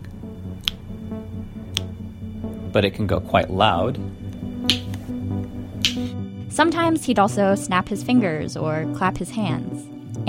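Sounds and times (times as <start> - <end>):
quiet tongue clicks used for echolocation: 0.6 - 0.8, 4.7 - 5.0, 5.8 - 6.1
speech: 2.8 - 4.8, 6.6 - 10.2.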